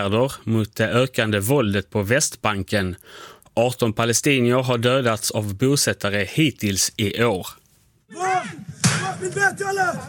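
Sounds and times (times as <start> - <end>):
speech: 0.0 - 10.0
raised voices shouting: 8.1 - 10.0
bang on a locked metal gate: 8.8 - 9.3.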